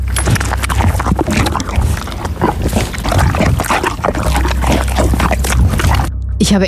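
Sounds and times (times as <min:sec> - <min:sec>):
horse eating a banana: 0:00.0 - 0:06.1.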